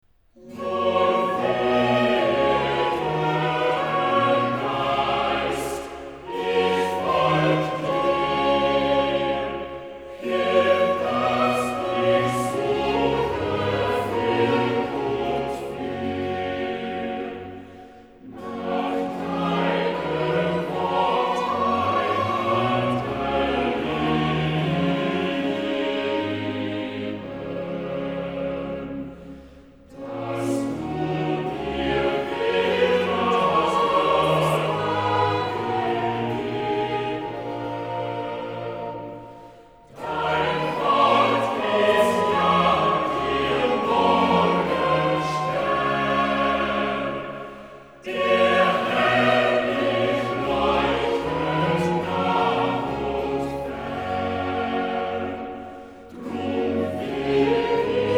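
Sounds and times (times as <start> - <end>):
chorale: 0.0 - 58.1.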